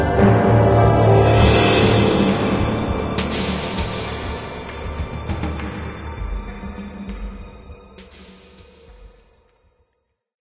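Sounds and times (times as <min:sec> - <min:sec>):
church tune: 0:00.0 - 0:06.5.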